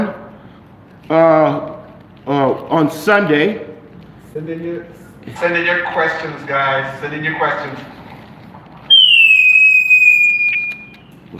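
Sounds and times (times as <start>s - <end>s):
speech: 1.1s - 1.7s, 2.3s - 3.7s, 4.4s - 8.0s
high loud whistle: 8.9s - 11.2s.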